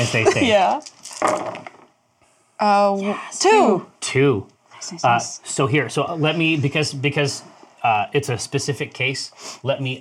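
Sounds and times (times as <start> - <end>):
speech: 0.0 - 1.8, 2.6 - 9.9
dice being tossed: 0.8 - 1.8.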